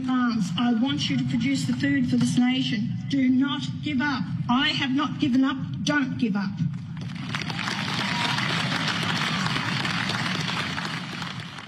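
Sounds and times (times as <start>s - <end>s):
speech: 0.0s - 6.9s
audience applause: 7.0s - 11.6s.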